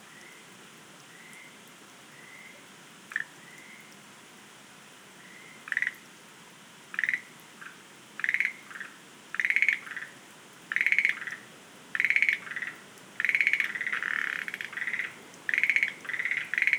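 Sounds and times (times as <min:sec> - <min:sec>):
Schlegel's green tree frog calling: 0:05.7 - 0:06.0, 0:07.0 - 0:16.7.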